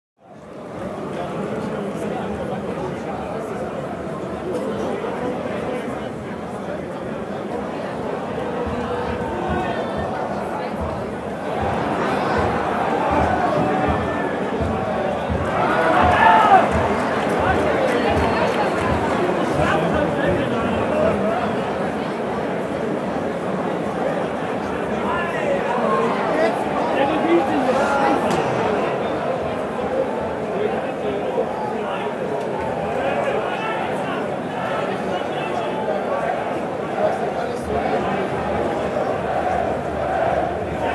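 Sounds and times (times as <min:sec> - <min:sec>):
stadium ambience beneath the grandstand: 0:00.2 - 0:40.9.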